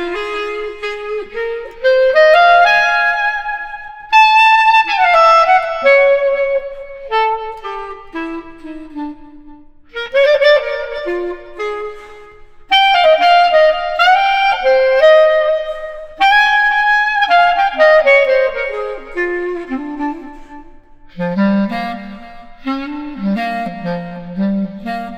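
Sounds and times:
street clarinet playing blues: 0.0s - 25.1s.

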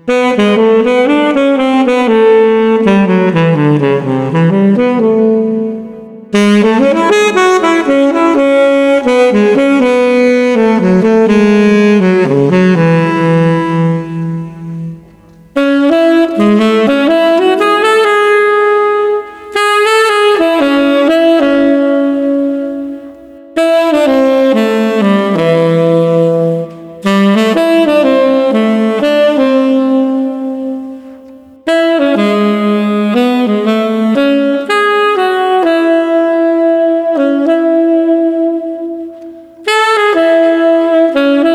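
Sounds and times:
serene street saxophone melody at 120 bpm: 0.0s - 41.5s.

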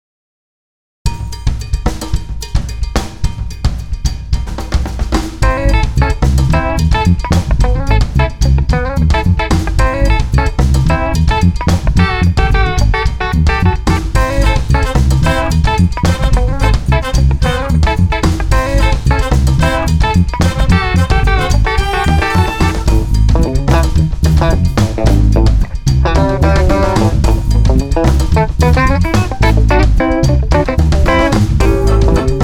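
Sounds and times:
New Orleans cowbell jam: 1.1s - 32.4s.

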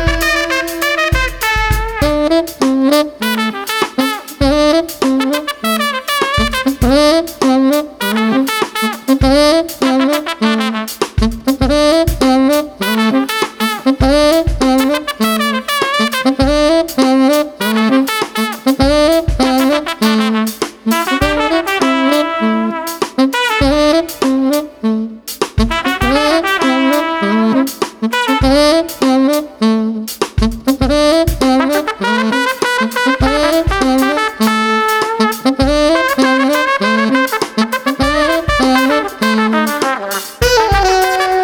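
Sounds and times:
smooth drums: 0.0s - 41.4s
street saxophone: 0.0s - 41.4s
trumpet: 0.0s - 41.4s.

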